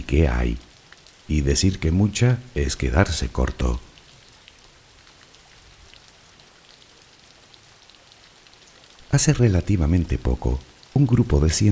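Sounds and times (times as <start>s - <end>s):
rain falling: 0.0s - 11.7s
speech: 0.1s - 0.7s, 1.3s - 3.9s, 9.1s - 11.7s.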